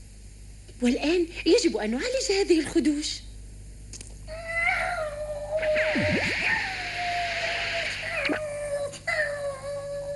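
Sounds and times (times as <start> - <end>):
speech: 0.8 - 3.3
cat yowling in pain: 4.3 - 10.1.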